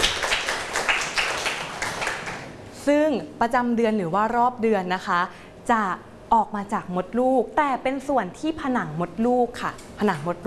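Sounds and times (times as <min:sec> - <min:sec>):
school class clapping for a classmate during a biology lesson: 0:00.0 - 0:02.6
speech: 0:02.8 - 0:10.4.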